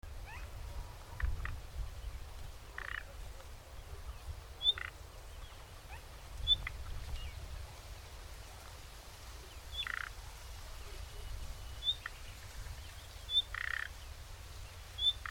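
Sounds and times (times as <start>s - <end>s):
common nightingale Luscinia megarhynchos calls: 1.1s - 7.4s, 9.4s - 10.2s, 10.8s - 15.2s.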